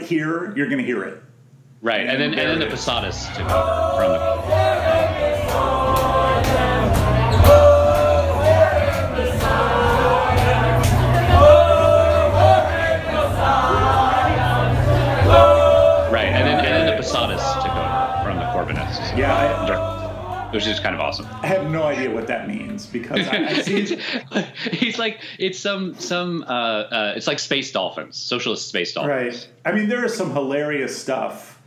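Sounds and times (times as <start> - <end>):
speech: 0.1 - 6.6, 20.5 - 31.5
crowd chanting to a rock song tune: 2.1 - 22.3, 23.2 - 24.9
laughter: 23.0 - 25.4.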